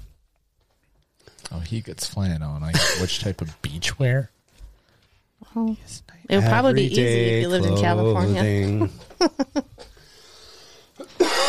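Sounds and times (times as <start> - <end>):
speech: 1.5 - 4.4, 5.5 - 9.7
person coughing after seltzer went down the wrong pipe: 2.7 - 3.1, 11.1 - 11.4
laughter: 6.6 - 10.0.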